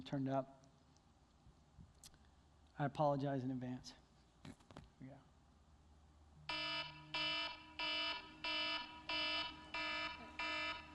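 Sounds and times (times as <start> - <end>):
speech: 0.0 - 0.6, 2.8 - 5.3
wake-up alarm clock buzzy electronic beeps: 6.5 - 10.9.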